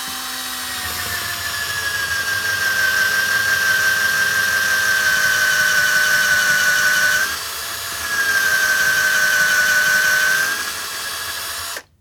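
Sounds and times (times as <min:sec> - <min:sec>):
electric drill: 0:00.0 - 0:11.9.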